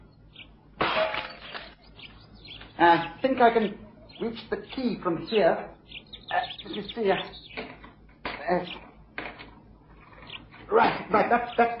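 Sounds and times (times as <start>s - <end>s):
window glass being smashed: 0.8s - 1.8s
speech: 2.8s - 5.8s, 6.6s - 7.4s, 8.5s - 8.8s, 10.7s - 11.7s.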